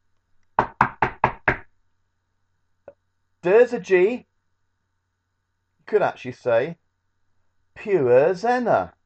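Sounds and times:
knocking on a door: 0:00.6 - 0:01.7
speech: 0:03.4 - 0:04.3, 0:05.9 - 0:06.8, 0:07.8 - 0:09.0.

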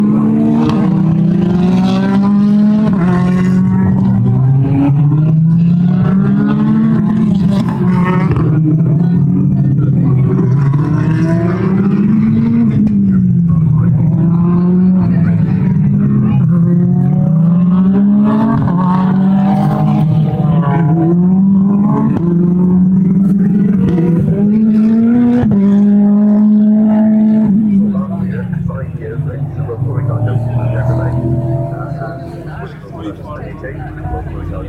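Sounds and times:
British Touring Car Championship racing cars at Thruxton: 0:00.0 - 0:34.6.

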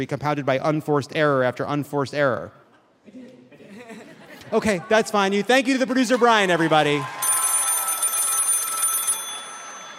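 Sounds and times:
speech: 0:00.0 - 0:03.4, 0:04.5 - 0:07.2
laughter: 0:03.1 - 0:06.7
telephone ringing: 0:07.2 - 0:09.9.

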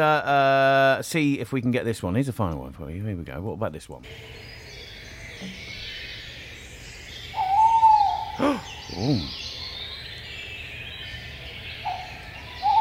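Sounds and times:
speech: 0:00.0 - 0:04.5, 0:05.4 - 0:05.7, 0:08.4 - 0:09.4
tawny owl hooting: 0:07.3 - 0:09.8, 0:11.8 - 0:12.7.

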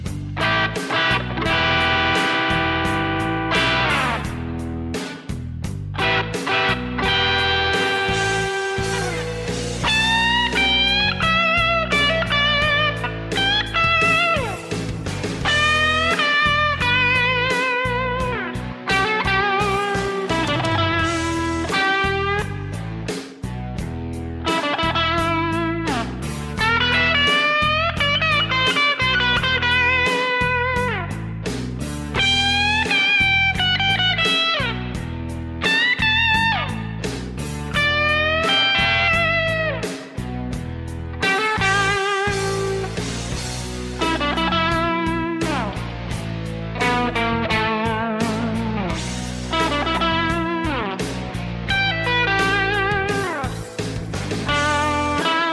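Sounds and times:
blues guitar solo: 0:00.2 - 0:55.5.

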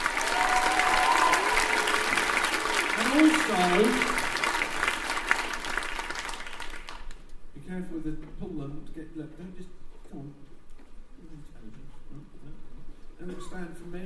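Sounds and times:
audience cheering and applauding: 0:00.0 - 0:07.2
speech: 0:03.2 - 0:04.2, 0:08.0 - 0:10.5, 0:11.3 - 0:14.0.

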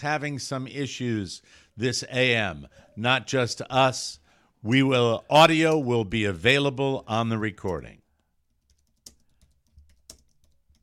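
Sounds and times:
speech: 0:00.0 - 0:08.0
slow typing on a computer keyboard: 0:08.4 - 0:10.8.

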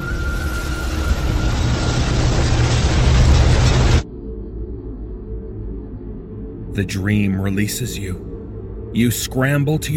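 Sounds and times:
suspension bridge groaning and tearing apart: 0:00.0 - 0:04.0
speech: 0:06.8 - 0:08.3, 0:08.9 - 0:09.9.

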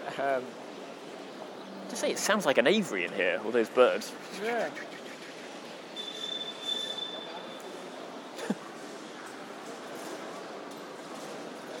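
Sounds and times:
speech: 0:00.2 - 0:00.7, 0:01.9 - 0:05.0
squeaking wheels of a small trolley: 0:06.0 - 0:07.7.

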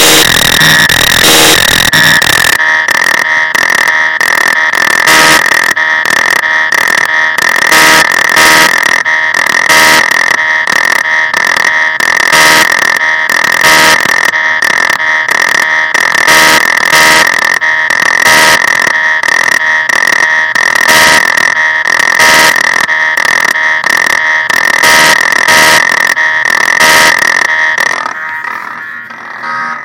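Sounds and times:
dual cyclotron Polivoks synthesizer: 0:00.0 - 0:29.8.

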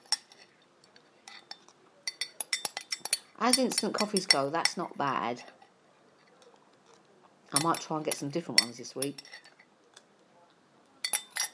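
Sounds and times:
spoon clinking against a small cup while eating coffee froth: 0:00.0 - 0:00.6, 0:01.3 - 0:04.8, 0:07.6 - 0:09.6, 0:11.0 - 0:11.5
speech: 0:03.4 - 0:05.6, 0:07.5 - 0:09.5.

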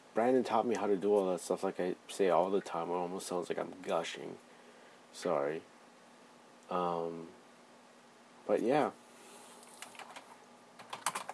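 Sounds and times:
speech: 0:00.2 - 0:04.5, 0:05.2 - 0:05.7, 0:06.7 - 0:07.4, 0:08.5 - 0:09.0
typing on a computer keyboard: 0:09.7 - 0:11.3.

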